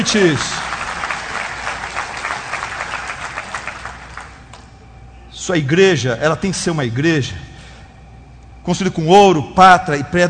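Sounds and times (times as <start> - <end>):
speech: 0.0 - 0.7, 5.5 - 7.5, 8.7 - 10.2
audience applauding: 0.0 - 4.6.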